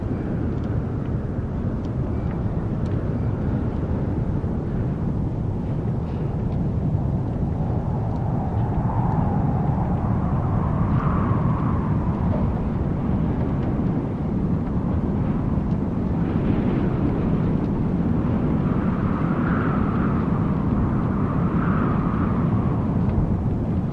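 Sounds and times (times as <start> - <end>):
stormy wind gusts in a sandy desert: 0.0 - 23.9.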